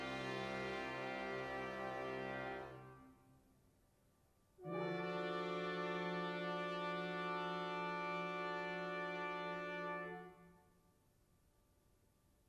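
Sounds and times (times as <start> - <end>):
brass instruments: 0.0 - 3.5, 4.6 - 10.8.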